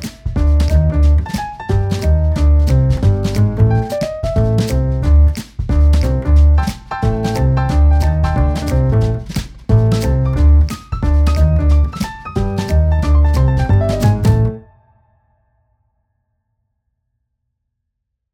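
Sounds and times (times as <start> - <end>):
jazz background music: 0.0 - 14.6.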